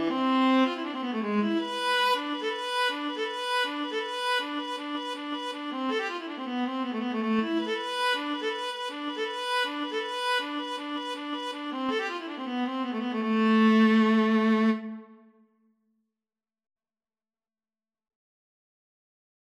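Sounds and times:
viola duet: 0:00.0 - 0:15.2.

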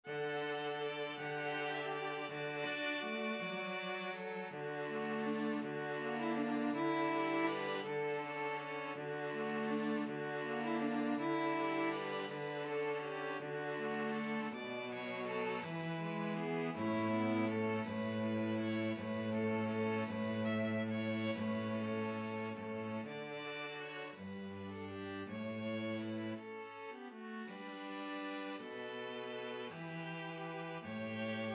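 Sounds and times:
string trio playing: 0:00.0 - 0:31.5.

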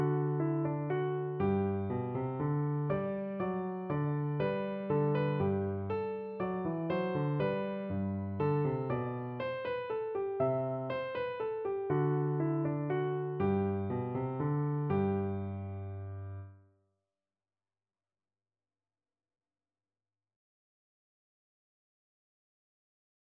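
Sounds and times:
classical minuet on piano: 0:00.0 - 0:16.6.

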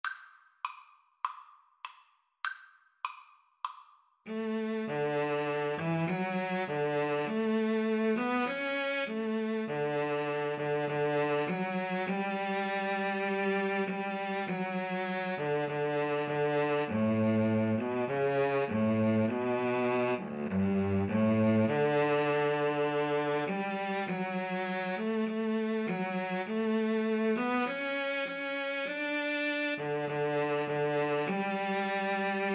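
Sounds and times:
violin and cello duet: 0:04.3 - 0:32.5.

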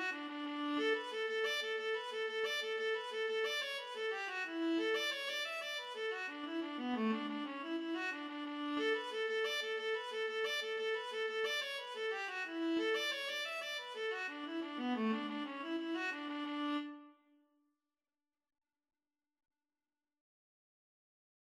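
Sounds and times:
viola duet playing an Irish jig medley: 0:00.0 - 0:17.1.

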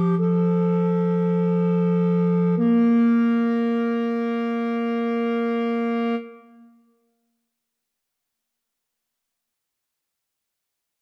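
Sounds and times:
clarinet trio: 0:00.0 - 0:06.6.

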